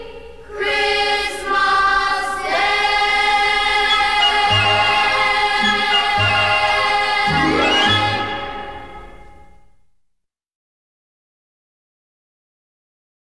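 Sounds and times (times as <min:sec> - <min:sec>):
children's vocal group singing: 0:00.5 - 0:09.0
band playing: 0:03.9 - 0:09.4.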